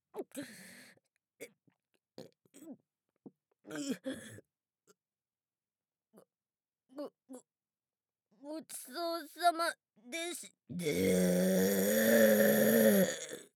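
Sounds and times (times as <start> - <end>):
loud burp: 10.8 - 13.5.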